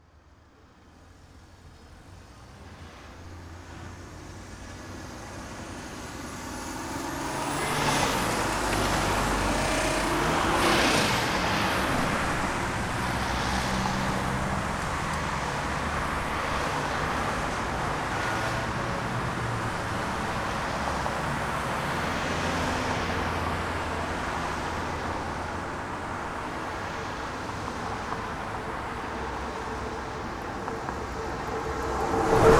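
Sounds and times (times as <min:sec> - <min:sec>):
traffic: 0:00.0 - 0:32.5.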